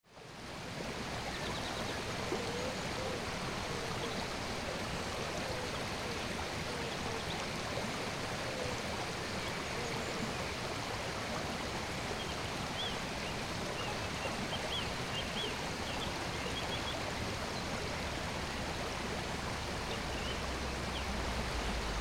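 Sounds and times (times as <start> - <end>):
stream flowing by a road: 0.1 - 21.9.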